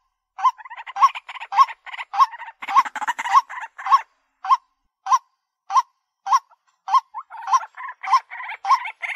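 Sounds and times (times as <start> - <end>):
White-breasted waterhen calling: 0.4 - 4.1, 6.3 - 9.1.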